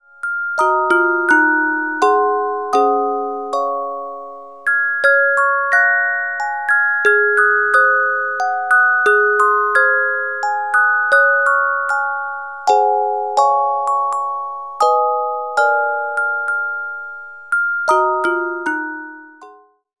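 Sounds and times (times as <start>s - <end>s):
carillon music box melodies: 0.0s - 19.8s.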